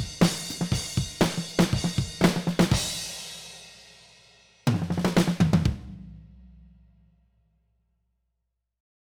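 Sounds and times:
pop drums: 0:00.0 - 0:06.9.

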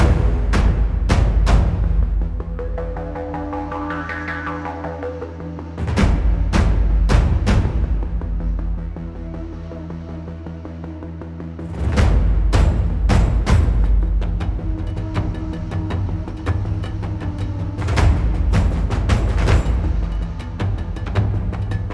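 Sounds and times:
low drums: 0:00.0 - 0:03.4, 0:05.8 - 0:09.4, 0:11.7 - 0:21.9
engine percussion: 0:00.0 - 0:09.4, 0:11.7 - 0:21.9.

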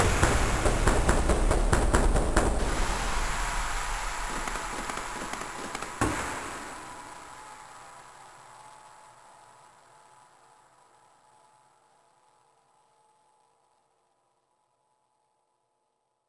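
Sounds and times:
drums slowing down: 0:00.0 - 0:07.5.

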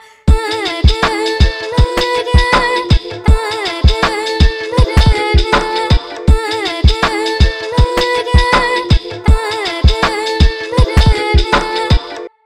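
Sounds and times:
short chill hop music: 0:00.3 - 0:12.3.

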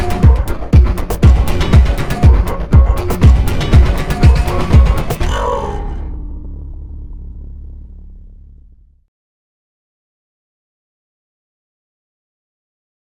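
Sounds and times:
klang beats: 0:00.0 - 0:05.9.

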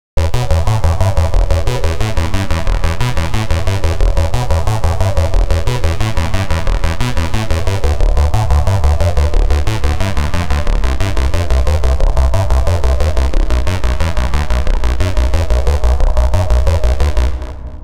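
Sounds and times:
technetium synth arpeggio: 0:00.2 - 0:17.8.

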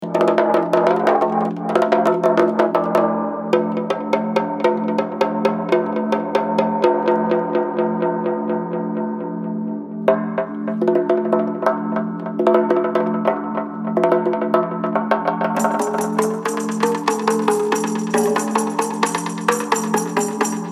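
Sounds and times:
bongo: 0:00.0 - 0:09.2, 0:10.0 - 0:20.7.

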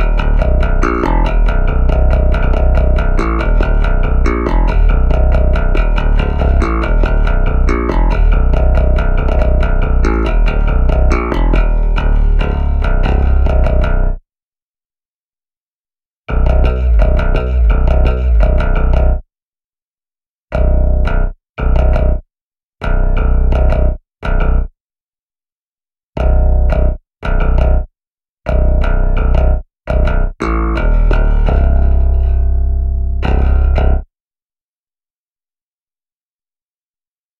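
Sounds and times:
bass: 0:00.0 - 0:14.2, 0:16.3 - 0:19.3, 0:20.5 - 0:24.8, 0:26.2 - 0:34.1.

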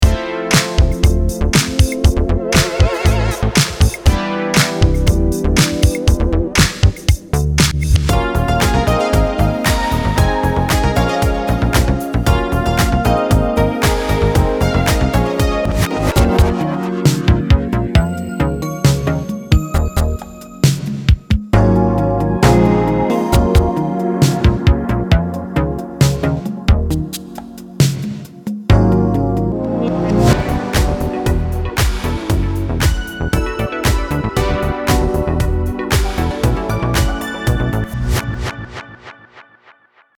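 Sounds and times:
funk synth: 0:00.0 - 0:39.1.

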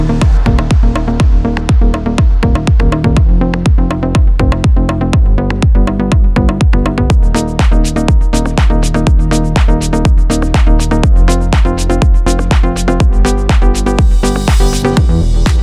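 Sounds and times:
house music drums: 0:00.0 - 0:15.6.

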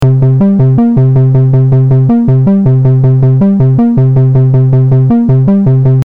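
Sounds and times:
smashed MS-20 synthesizer: 0:00.0 - 0:06.0.

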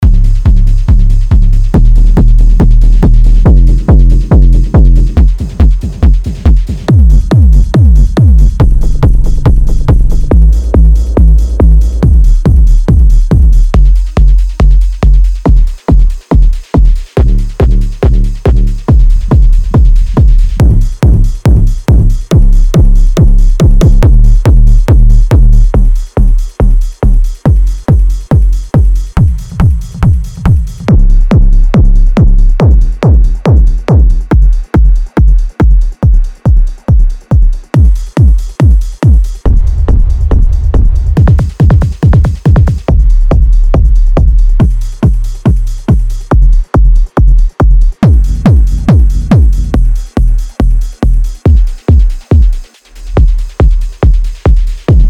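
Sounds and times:
techno kick drums: 0:00.0 - 0:55.0.

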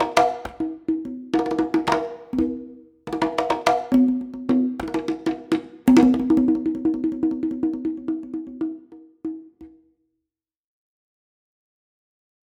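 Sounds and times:
single conga hits: 0:00.0 - 0:09.8.

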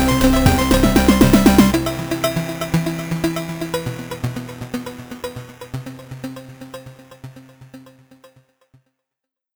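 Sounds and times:
8-bit generator sound: 0:00.0 - 0:07.3.

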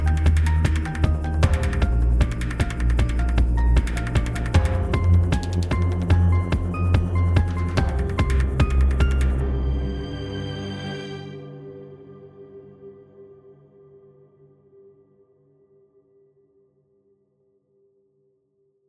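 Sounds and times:
fast kalimba playing: 0:00.0 - 0:09.4.

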